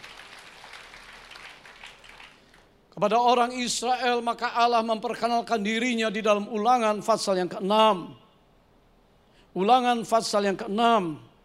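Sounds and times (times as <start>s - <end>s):
audience applause: 0.0s - 2.7s
speech: 3.0s - 8.2s, 9.6s - 11.3s.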